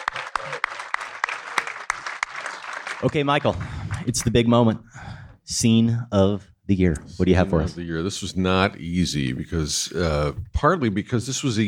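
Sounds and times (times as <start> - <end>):
audience applause: 0.0 - 4.3
person clapping in even rhythm: 0.0 - 4.3
speech: 3.0 - 11.6.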